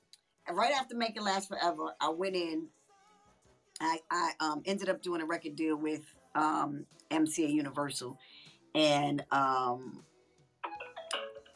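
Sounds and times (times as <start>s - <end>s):
speech: 0.5s - 2.8s, 3.8s - 10.1s
mobile phone electronic tones: 10.7s - 11.5s.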